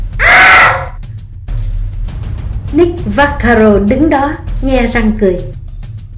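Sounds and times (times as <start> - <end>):
woman screaming: 0.2 - 1.0
speech: 2.8 - 5.6.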